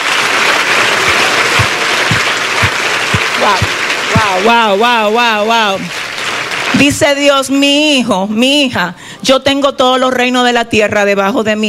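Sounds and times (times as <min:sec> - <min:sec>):
audience applause: 0:00.0 - 0:07.2
speech: 0:03.4 - 0:06.0, 0:06.8 - 0:11.6.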